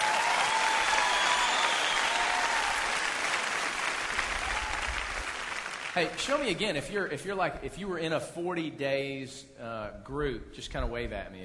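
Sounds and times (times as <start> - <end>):
weak audience applause: 0.0 - 6.6
speech: 6.0 - 11.4.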